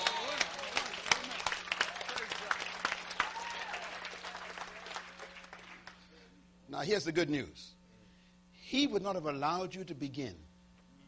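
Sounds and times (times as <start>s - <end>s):
audience clapping: 0.0s - 6.0s
speech: 6.8s - 7.8s, 8.7s - 10.5s.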